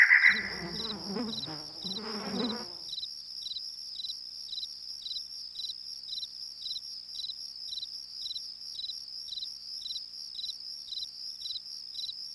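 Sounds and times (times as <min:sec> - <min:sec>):
crickets chirping: 0:00.0 - 0:03.0
night critters: 0:00.1 - 0:02.9.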